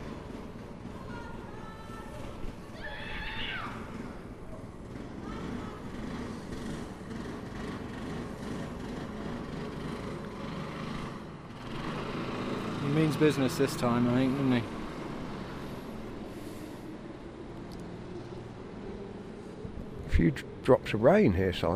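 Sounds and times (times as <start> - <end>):
racing car engines droning during practice at Cowdenbeath motor racing track: 0.0 - 21.7
speech: 13.1 - 14.8, 20.2 - 21.7.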